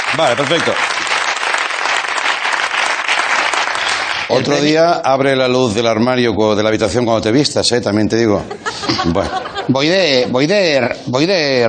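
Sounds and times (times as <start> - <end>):
group applauding: 0.0 - 4.7
speech: 0.2 - 1.0, 4.3 - 11.6
laughter: 8.3 - 11.1.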